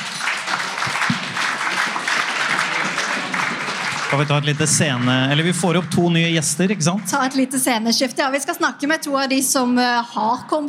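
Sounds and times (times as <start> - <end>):
audience applause: 0.0 - 7.7
speech: 4.1 - 10.6.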